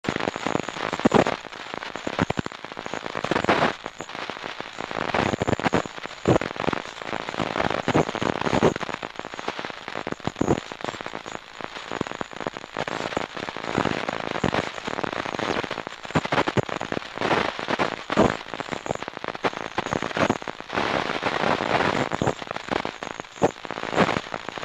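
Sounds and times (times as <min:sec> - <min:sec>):
headphone static noise: 0:00.0 - 0:24.6.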